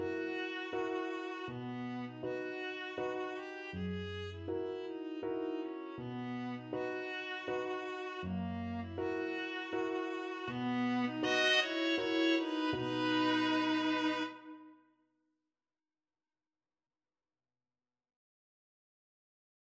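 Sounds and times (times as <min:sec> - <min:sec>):
viola playing a waltz: 0:00.0 - 0:14.7.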